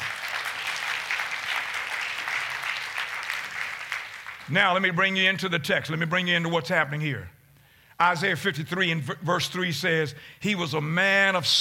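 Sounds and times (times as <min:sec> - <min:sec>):
audience hand clapping: 0:00.0 - 0:04.8
speech: 0:04.5 - 0:07.4, 0:08.0 - 0:11.5.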